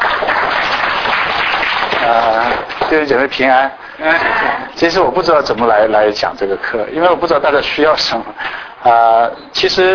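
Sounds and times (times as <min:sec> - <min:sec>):
audience applause at a Chinese church talk on Christian music education: 0:00.0 - 0:03.1
speech: 0:02.1 - 0:09.9.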